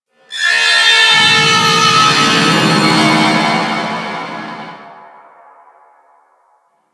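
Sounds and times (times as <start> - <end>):
space trench battle ambience: 1.1 - 5.1.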